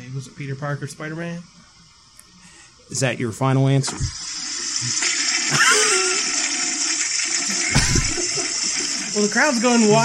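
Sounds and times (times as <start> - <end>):
speech: 0.1 - 1.6, 2.9 - 6.1, 9.2 - 10.0
toilet flushing: 3.7 - 10.0.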